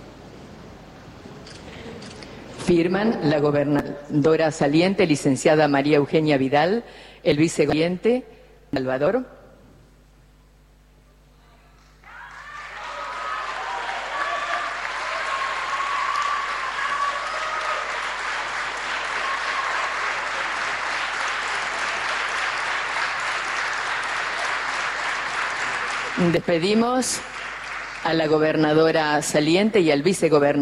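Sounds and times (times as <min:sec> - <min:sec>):
speech: 0:02.7 - 0:09.4, 0:26.3 - 0:27.3, 0:28.0 - 0:30.6
large audience applause: 0:12.0 - 0:28.3.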